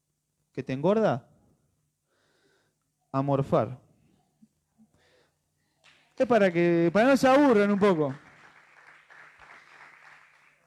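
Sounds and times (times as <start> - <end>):
speech: 0.6 - 1.3, 3.1 - 3.8, 6.2 - 8.2
weak scattered applause: 5.8 - 10.6.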